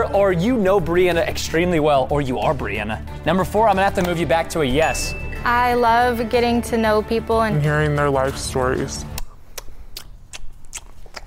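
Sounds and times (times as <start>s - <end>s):
speech: 0.0s - 9.1s
person chewing: 9.1s - 11.2s.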